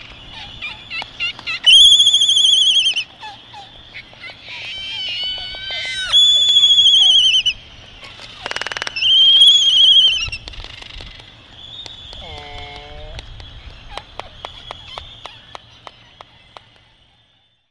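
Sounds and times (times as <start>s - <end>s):
Laysan albatrosses calling: 0.0s - 17.5s.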